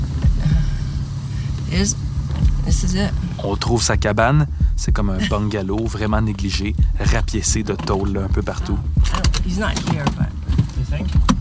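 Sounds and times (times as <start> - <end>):
car engine rumble: 0.0 - 11.3
speech: 1.8 - 11.3.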